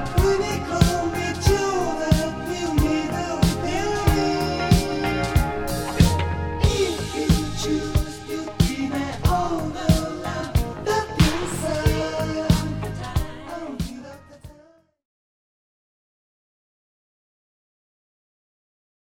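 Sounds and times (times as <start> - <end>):
bass: 0.0 - 14.6.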